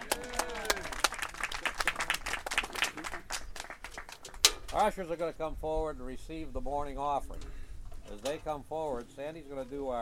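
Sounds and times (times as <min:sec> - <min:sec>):
audience applauding: 0:00.0 - 0:04.4
speech: 0:04.8 - 0:10.0.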